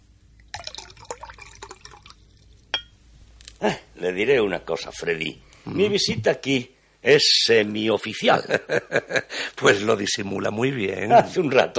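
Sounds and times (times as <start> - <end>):
coffee pouring from a pot: 0.4 - 2.9
china or glass clink: 2.7 - 3.0
speech: 3.6 - 11.7
laughter: 8.3 - 9.5.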